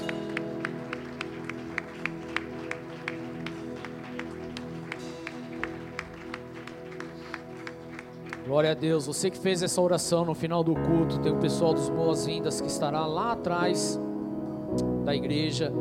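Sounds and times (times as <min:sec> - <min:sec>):
audience clapping in rhythm: 0:00.0 - 0:09.0
low keyboard or organ chord: 0:00.0 - 0:15.7
speech: 0:08.5 - 0:14.1, 0:14.8 - 0:15.7.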